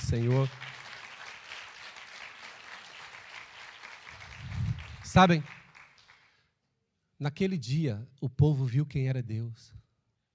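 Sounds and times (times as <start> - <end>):
audience applauding: 0.0 - 6.4
speech: 0.1 - 0.7, 5.2 - 5.6, 7.2 - 9.8.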